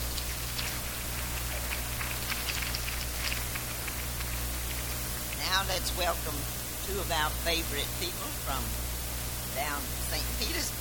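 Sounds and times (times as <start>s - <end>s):
audience applause: 0.4s - 5.0s
speech: 5.7s - 8.8s, 9.6s - 10.7s.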